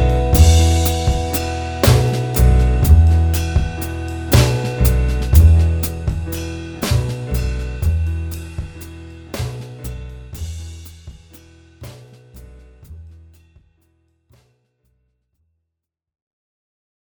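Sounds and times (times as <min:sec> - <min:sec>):
improvised music mix: 0:00.0 - 0:13.0.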